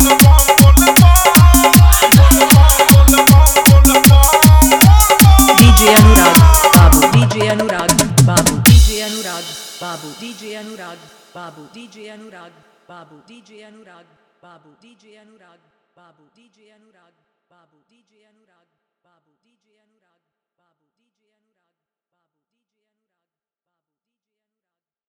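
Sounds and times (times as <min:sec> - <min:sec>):
bolbam style dholak bass dance mix: 0:00.0 - 0:10.6.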